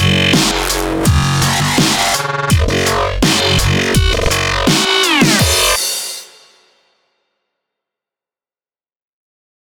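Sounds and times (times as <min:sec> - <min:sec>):
dubstep music: 0:00.0 - 0:05.9.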